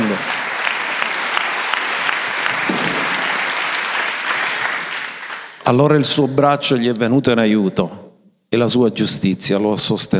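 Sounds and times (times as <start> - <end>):
audience applause: 0.0 - 5.6
speech: 5.7 - 10.1.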